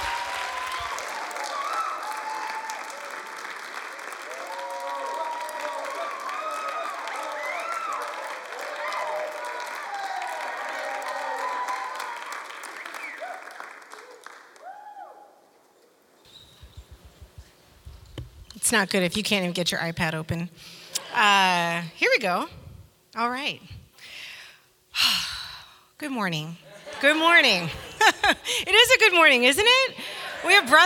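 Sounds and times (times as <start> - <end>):
church congregation standing and applauding to welcome a guest preacher: 0.0 - 14.9
speech: 18.7 - 22.6, 23.2 - 23.8, 26.0 - 29.9, 30.5 - 30.8.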